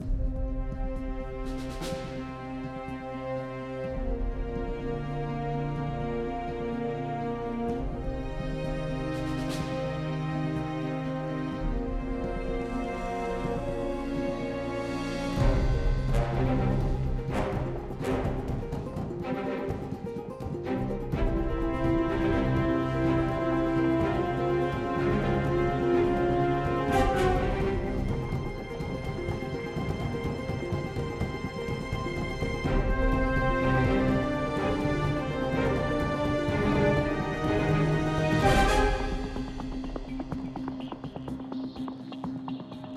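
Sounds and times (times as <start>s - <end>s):
tense music: 0.0s - 42.9s.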